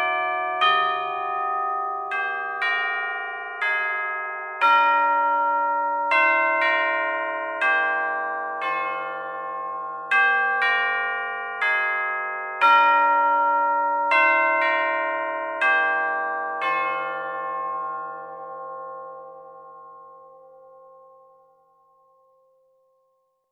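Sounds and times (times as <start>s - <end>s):
chimes of a cathedral: 0.0s - 22.6s.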